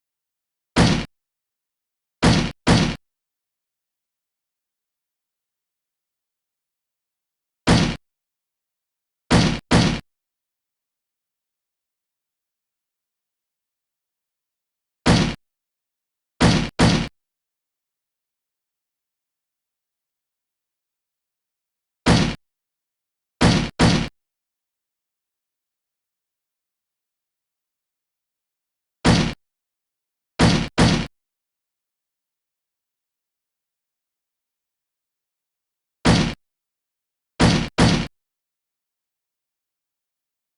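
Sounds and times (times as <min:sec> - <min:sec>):
slam: 0:00.8 - 0:01.1, 0:02.2 - 0:03.0, 0:07.7 - 0:08.0, 0:09.3 - 0:10.0, 0:15.1 - 0:15.4, 0:16.4 - 0:17.1, 0:22.1 - 0:22.4, 0:23.4 - 0:24.1, 0:29.1 - 0:29.4, 0:30.4 - 0:31.1, 0:36.1 - 0:36.4, 0:37.4 - 0:38.1.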